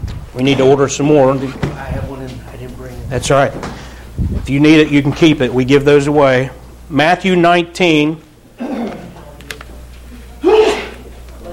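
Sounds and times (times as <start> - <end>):
speech: 0.4 - 1.9, 3.1 - 8.3
person sneezing: 8.6 - 9.1, 10.4 - 11.1.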